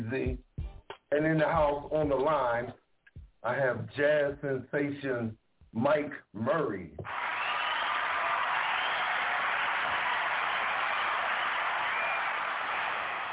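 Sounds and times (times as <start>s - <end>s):
speech: 0.0s - 0.5s, 1.1s - 2.8s, 3.4s - 7.3s
crowd cheering and yelling: 7.0s - 13.3s.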